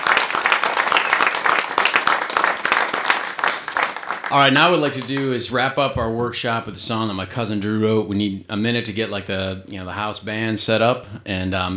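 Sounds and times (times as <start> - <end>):
crowd applauding: 0.0 - 5.4
speech: 4.3 - 11.7.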